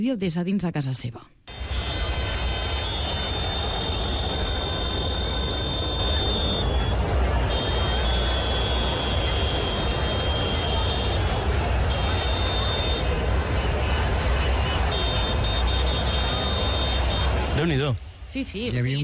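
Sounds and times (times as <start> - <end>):
speech: 0.0 - 1.4, 17.6 - 19.0
street noise: 1.4 - 19.0
car horns honking: 1.5 - 13.2, 14.4 - 17.6
street crowd murmuring: 1.5 - 19.0.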